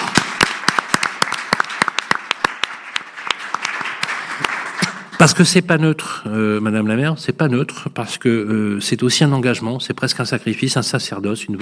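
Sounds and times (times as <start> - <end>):
audience applause: 0.0 - 5.3
speech: 5.2 - 11.6.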